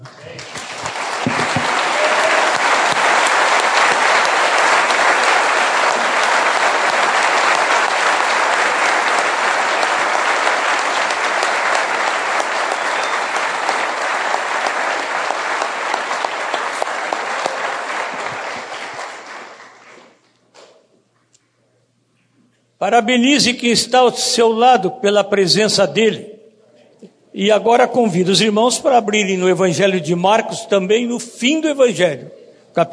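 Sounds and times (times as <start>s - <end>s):
audience applause: 0.0s - 20.3s
speech: 22.9s - 26.3s, 27.4s - 32.9s.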